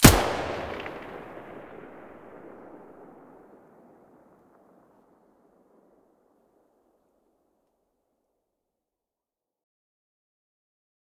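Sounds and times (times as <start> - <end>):
weapon muzzle blast: 0.0 - 3.9.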